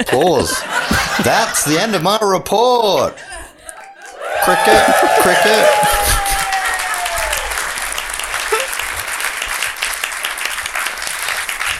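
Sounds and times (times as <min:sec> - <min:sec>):
speech: 0:00.0 - 0:03.3, 0:04.4 - 0:06.2
laughter: 0:00.0 - 0:07.5, 0:08.4 - 0:08.8
people clapping: 0:03.7 - 0:11.7.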